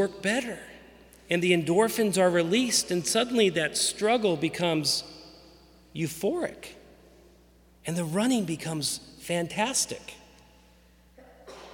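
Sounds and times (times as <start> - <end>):
speech: 0.0 - 0.7, 1.3 - 5.2, 6.0 - 6.8, 7.8 - 10.2
sneeze: 11.2 - 11.7.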